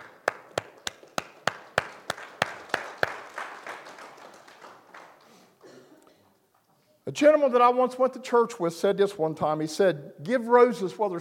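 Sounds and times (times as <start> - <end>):
audience clapping hands: 0.0 - 5.6
speech: 7.1 - 11.1.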